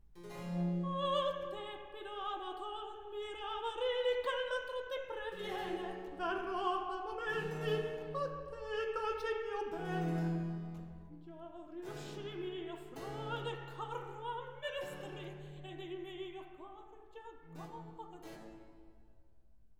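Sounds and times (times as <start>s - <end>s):
recitative singing: 0.3s - 18.8s.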